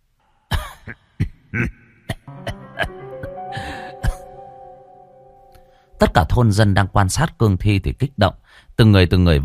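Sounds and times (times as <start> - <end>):
dry human-like coughing: 0.5 - 3.0
speech: 0.9 - 1.8, 6.2 - 9.4.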